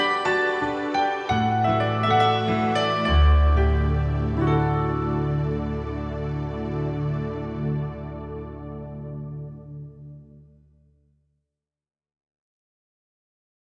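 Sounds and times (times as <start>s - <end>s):
piano: 0.0s - 10.6s.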